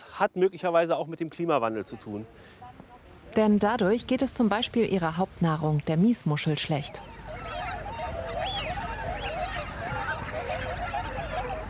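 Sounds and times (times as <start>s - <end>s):
speech: 0.2s - 2.8s, 3.4s - 7.2s
huge flock of wigeon ducks calling: 6.8s - 11.6s.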